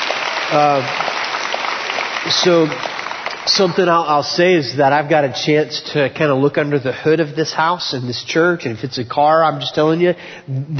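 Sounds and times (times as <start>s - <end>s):
audience applause: 0.0s - 4.5s
speech: 0.5s - 1.1s, 2.3s - 10.7s.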